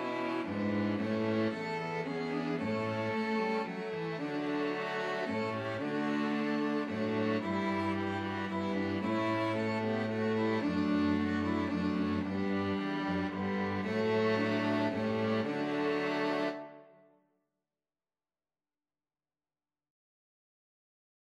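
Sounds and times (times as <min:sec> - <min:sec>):
string quartet: 0:00.0 - 0:16.9.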